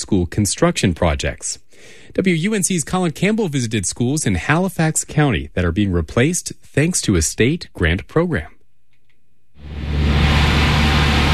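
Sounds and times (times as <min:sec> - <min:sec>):
speech: 0:00.1 - 0:08.6
noisy antiquated window air conditioning unit at Hollister Elementary School: 0:09.6 - 0:11.3.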